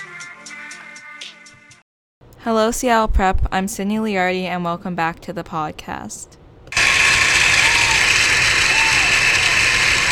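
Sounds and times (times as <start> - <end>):
speech: 2.4 - 6.4
crowd cheering: 6.8 - 10.1.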